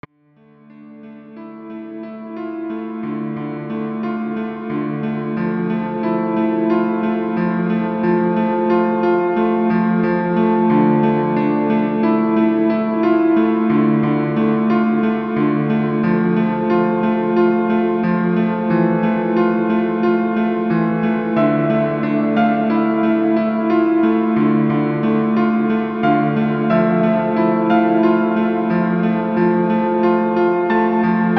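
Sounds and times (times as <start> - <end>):
piano: 0.0 - 31.3.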